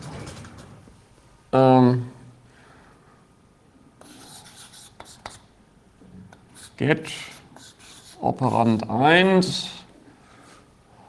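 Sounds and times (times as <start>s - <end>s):
speech: 1.5s - 2.1s, 6.8s - 7.3s, 8.2s - 9.8s
handwriting strokes while working through programming notation: 4.0s - 5.4s, 6.6s - 8.2s.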